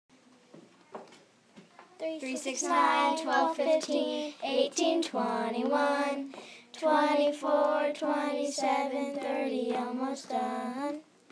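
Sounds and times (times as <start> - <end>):
counting by threes song: 2.2 - 10.9.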